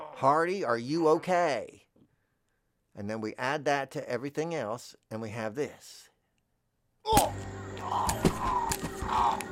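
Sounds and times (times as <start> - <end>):
speech: 0.2 - 1.8, 3.0 - 6.1
foley punch made with celery: 7.1 - 9.2.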